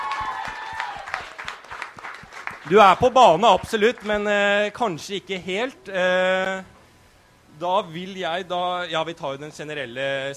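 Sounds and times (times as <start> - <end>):
audience applause: 0.0 - 4.2
speech: 2.7 - 6.7, 7.6 - 10.3.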